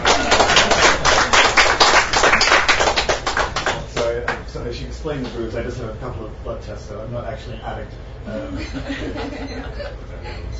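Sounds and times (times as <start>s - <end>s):
audience applause: 0.0s - 4.1s
speech: 5.0s - 10.5s
laughter: 8.3s - 10.5s.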